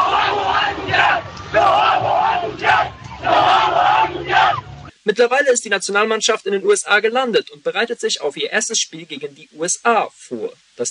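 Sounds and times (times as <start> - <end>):
fans cheering: 0.0 - 4.9
speech: 5.1 - 10.8.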